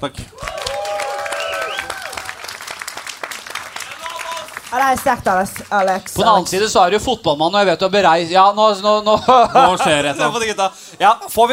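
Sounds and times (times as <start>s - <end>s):
speech: 0.0s - 0.5s, 4.7s - 11.5s
audience applause: 0.3s - 6.4s
laughter: 9.1s - 10.7s.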